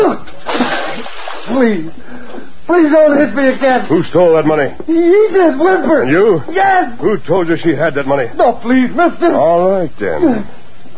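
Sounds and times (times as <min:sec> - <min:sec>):
water splashed onto a person: 0:00.3 - 0:01.9
speech: 0:01.6 - 0:02.0, 0:02.7 - 0:10.6.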